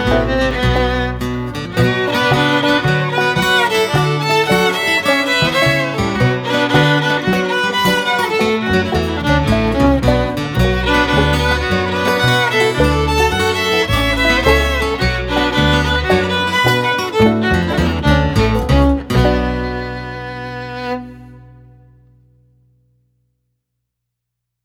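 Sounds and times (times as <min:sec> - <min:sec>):
violin melody: 0:00.0 - 0:21.9
slow guitar: 0:00.0 - 0:22.6.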